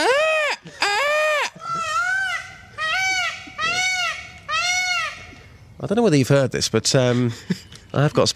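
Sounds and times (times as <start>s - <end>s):
person imitating a peacock call: 0.0s - 5.4s
speech: 5.8s - 8.3s.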